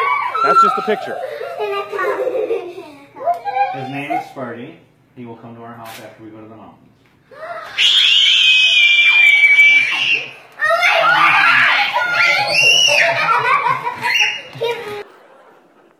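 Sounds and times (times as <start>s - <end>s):
excited girls squealing loudly: 0.0s - 1.9s, 7.3s - 15.0s
laughter: 0.0s - 4.2s, 9.7s - 15.9s
speech: 0.4s - 8.0s.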